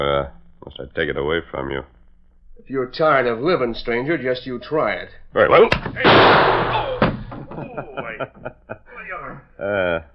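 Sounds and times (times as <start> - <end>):
speech: 0.0 - 2.0, 2.6 - 6.8, 7.8 - 8.7, 9.6 - 10.1
short thump: 5.7 - 7.6
gunshot knocking a gun out of a hand: 5.9 - 7.3
laughter: 6.6 - 10.1.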